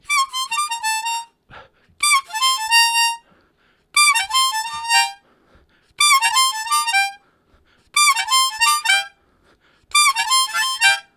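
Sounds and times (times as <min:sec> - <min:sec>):
high repeated harmonica riffs: 0:00.0 - 0:03.3, 0:04.0 - 0:05.2, 0:06.0 - 0:07.2, 0:08.0 - 0:09.2, 0:09.9 - 0:11.1.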